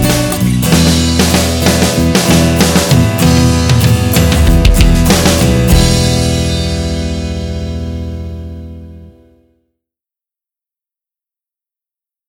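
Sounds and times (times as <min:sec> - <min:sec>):
16-bar musical phrase in E minor with fills: 0:00.0 - 0:09.3.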